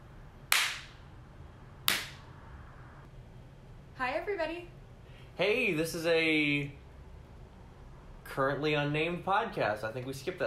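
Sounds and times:
single hand clap for recording sync: 0.5 - 1.0, 1.9 - 2.2
speech: 4.0 - 4.8, 5.4 - 6.8, 8.3 - 10.4.

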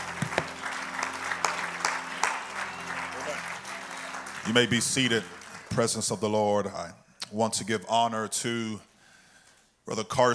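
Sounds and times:
people clapping: 0.0 - 6.4
speech: 4.5 - 8.9, 9.9 - 10.3.

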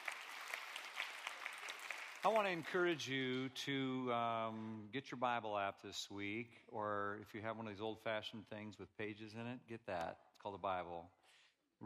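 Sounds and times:
audience applause: 0.0 - 2.9
speech: 2.2 - 11.2.

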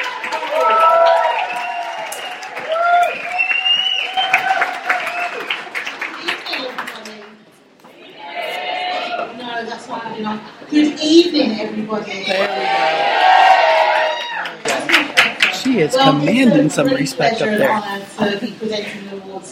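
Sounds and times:
loud whoops and cheering voices: 0.0 - 5.6, 12.5 - 14.6
audience applause: 0.0 - 7.4, 12.5 - 16.8
speech: 11.0 - 13.0, 15.8 - 19.5.

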